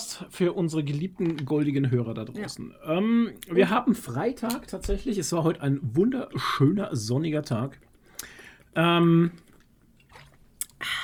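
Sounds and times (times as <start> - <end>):
speech: 0.2 - 7.8, 8.7 - 9.4
pizza being chewed: 9.3 - 10.8.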